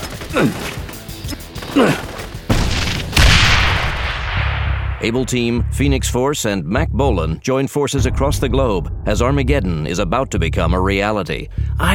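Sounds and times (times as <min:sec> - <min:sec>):
speech: 0:00.3 - 0:00.8, 0:05.0 - 0:11.9
hand grenades exploding: 0:01.7 - 0:05.0.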